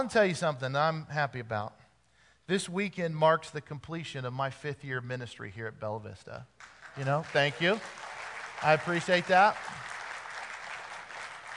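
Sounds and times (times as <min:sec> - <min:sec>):
speech: 0:00.0 - 0:01.8, 0:02.5 - 0:08.0, 0:08.6 - 0:09.8
audience clapping: 0:06.6 - 0:11.5.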